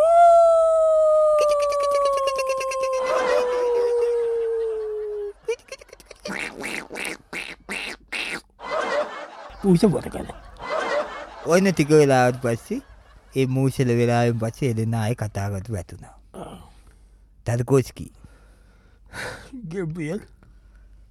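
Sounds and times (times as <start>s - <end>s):
human voice imitating a dog howling: 0.0s - 5.4s
laughter: 1.7s - 6.3s, 8.6s - 14.5s
speech: 9.7s - 10.4s, 11.4s - 16.2s, 17.5s - 18.2s, 19.1s - 20.4s.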